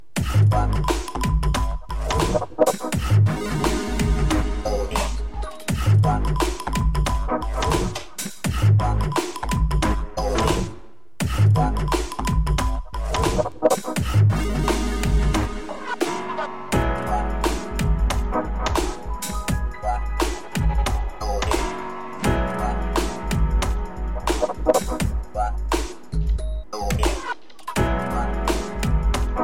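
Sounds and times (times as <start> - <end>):
piano: 0.0 - 10.9, 11.5 - 29.4.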